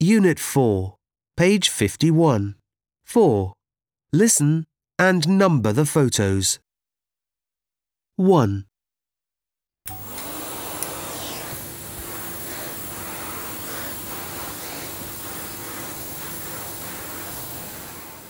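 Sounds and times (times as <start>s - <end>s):
speech: 0.0s - 6.6s, 8.2s - 8.7s, 9.8s - 10.1s
floor-cleaning machine: 9.9s - 18.2s.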